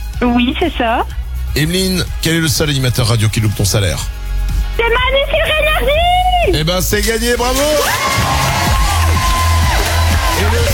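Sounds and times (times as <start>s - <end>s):
speech: 0.3s - 4.2s, 4.8s - 8.4s
stadium crowd cheering sound effect: 7.4s - 10.7s
people whooping and yelling: 7.5s - 10.7s.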